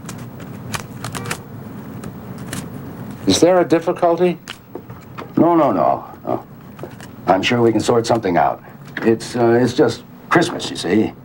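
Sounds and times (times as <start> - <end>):
index cards in a card file being flicked through: 0.0 - 1.4, 2.0 - 2.7, 4.4 - 4.6
low steady background: 0.0 - 11.2
speech: 3.2 - 4.5, 5.4 - 6.5, 7.3 - 11.2.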